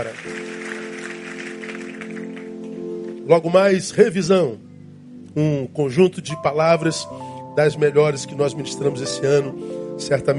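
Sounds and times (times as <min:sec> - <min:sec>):
speech: 0:00.0 - 0:00.5, 0:03.3 - 0:04.7, 0:05.3 - 0:10.3
audience applause: 0:00.0 - 0:03.2.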